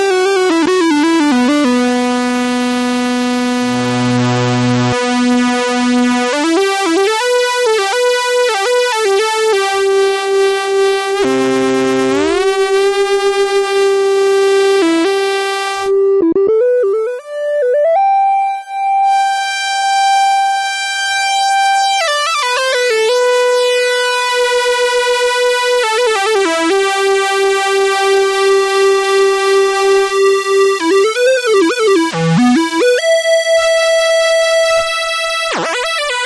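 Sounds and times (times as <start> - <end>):
Moog Little Phatty Stage II synthesizer oscillators: 0.4 - 36.2.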